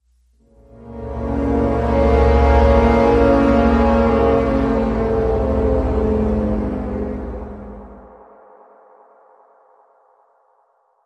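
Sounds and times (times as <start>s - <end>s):
foreboding brass bend: 0.4s - 8.2s.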